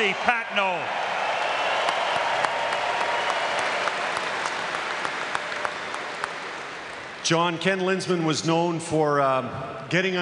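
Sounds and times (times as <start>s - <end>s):
speech: 0.0s - 1.0s, 7.3s - 10.2s
crowd applauding: 0.0s - 7.3s.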